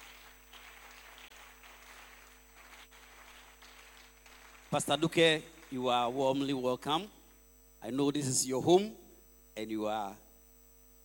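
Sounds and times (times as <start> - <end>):
church audience clapping: 0.0 - 7.0
speech: 4.7 - 7.2, 7.8 - 9.0, 9.6 - 10.2.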